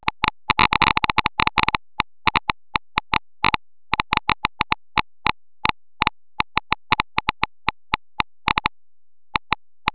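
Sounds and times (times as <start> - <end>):
Geiger counter clicking: 0.0 - 9.9.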